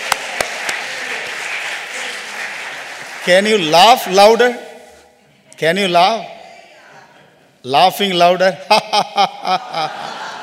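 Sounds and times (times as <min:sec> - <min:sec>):
audience clapping hands: 0:00.0 - 0:04.4
speech: 0:03.2 - 0:04.6, 0:05.6 - 0:06.4, 0:07.6 - 0:10.0
laughter: 0:08.6 - 0:10.4.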